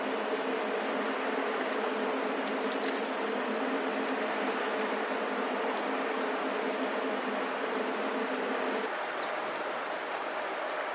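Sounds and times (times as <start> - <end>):
small songbird calls: 0.0 - 1.2, 2.2 - 4.6, 8.8 - 10.2
background hiss: 0.0 - 10.9.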